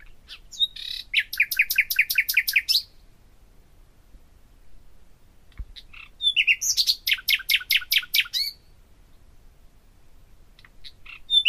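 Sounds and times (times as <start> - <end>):
common nightingale singing: 0.3 - 2.9, 5.8 - 8.6, 10.8 - 11.4.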